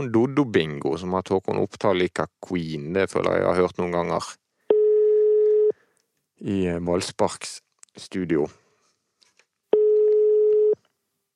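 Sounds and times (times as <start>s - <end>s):
speech: 0.0s - 4.4s, 6.4s - 8.6s
telephone ring tone on a call placed into a studio: 4.7s - 5.7s, 9.7s - 10.8s.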